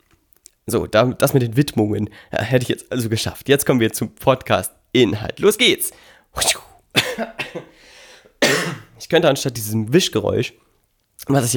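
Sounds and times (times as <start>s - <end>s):
speech: 0.7s - 7.7s, 8.6s - 10.6s, 11.2s - 11.5s
man coughing: 6.4s - 7.8s, 8.4s - 9.0s.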